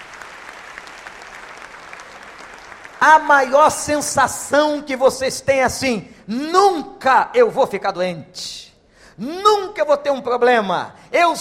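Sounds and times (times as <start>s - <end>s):
audience applause: 0.0s - 3.3s
speech: 3.0s - 11.3s.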